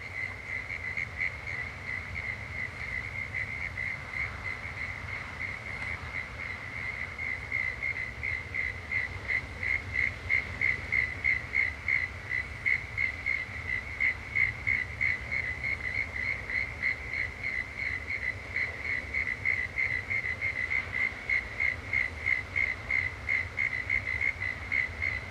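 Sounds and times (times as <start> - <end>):
crickets chirping at Woorim beach: 0.0 - 25.2.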